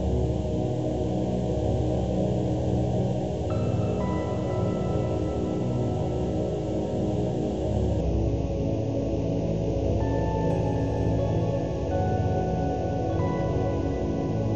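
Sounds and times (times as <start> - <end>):
night-themed background music: 0.0 - 14.5.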